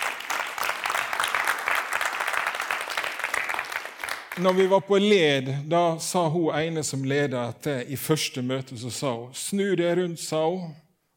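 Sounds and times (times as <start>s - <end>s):
audience applause: 0.0s - 4.7s
speech: 4.4s - 10.8s.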